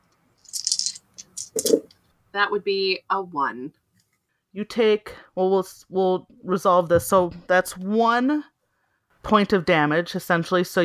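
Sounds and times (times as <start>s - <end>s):
dice rolling: 0.4s - 1.9s
speech: 1.6s - 3.8s, 4.5s - 8.5s, 9.2s - 10.8s.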